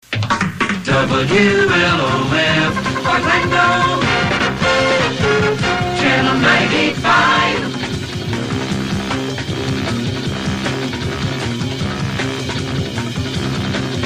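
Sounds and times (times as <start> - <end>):
long drum outro: 0.1 - 14.0.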